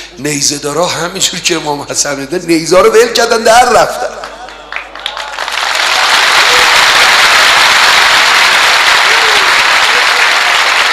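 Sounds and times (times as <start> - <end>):
speech: 0.1 - 4.3
audience clapping: 4.1 - 10.9.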